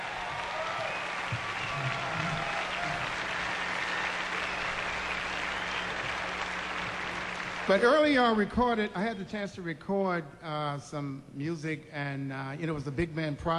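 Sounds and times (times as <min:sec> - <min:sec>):
audience applause: 0:00.0 - 0:08.4
speech: 0:07.7 - 0:13.5.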